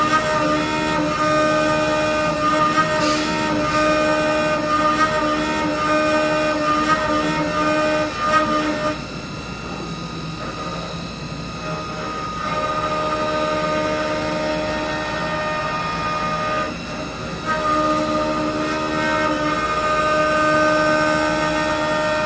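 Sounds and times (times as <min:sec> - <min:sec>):
lathe running: 0:00.0 - 0:22.2.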